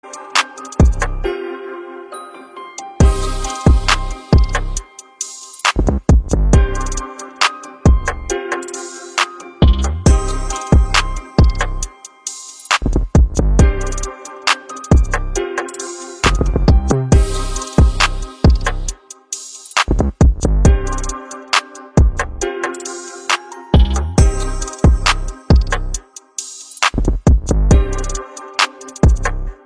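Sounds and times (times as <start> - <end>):
tech house remix: 0.0 - 1.3, 3.0 - 29.6.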